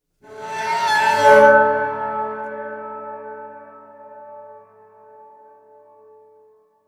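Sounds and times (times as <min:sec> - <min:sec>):
cello: 0:00.2 - 0:03.9.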